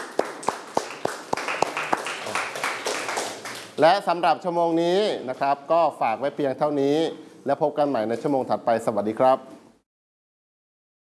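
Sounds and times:
students clapping: 0.0 - 3.8
speech: 3.8 - 9.5.

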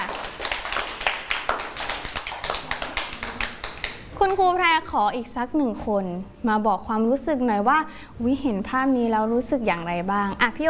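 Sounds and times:
clapping: 0.0 - 4.0
speech: 4.3 - 10.6.

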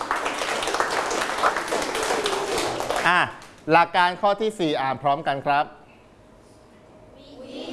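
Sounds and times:
group clapping hands: 0.0 - 3.7
speech: 3.1 - 5.8.

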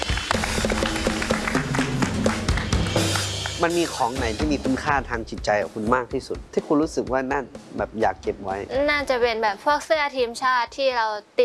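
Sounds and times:
audience applause: 0.0 - 3.8
speech: 3.6 - 11.4.

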